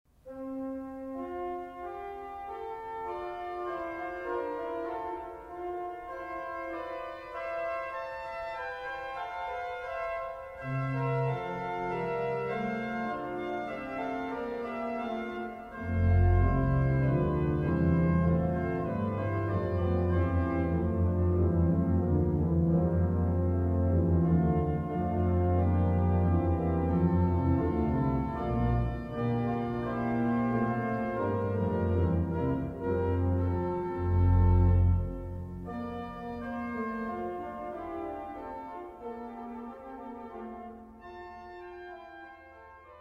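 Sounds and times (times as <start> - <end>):
chorale fugue: 0.1 - 43.0.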